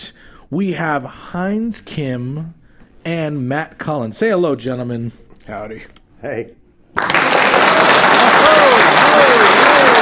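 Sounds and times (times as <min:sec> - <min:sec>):
speech: 0:00.5 - 0:08.6
studio audience applause: 0:07.0 - 0:10.0.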